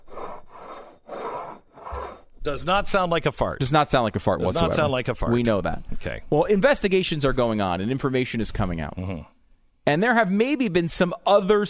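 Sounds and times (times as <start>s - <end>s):
mug scraped back and forth across a desk: 0.0s - 2.3s
speech: 2.4s - 11.6s.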